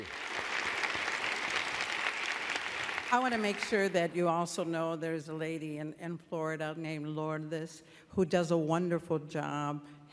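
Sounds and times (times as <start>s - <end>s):
audience applause at a community gathering: 0.0s - 3.9s
speech: 3.1s - 10.1s.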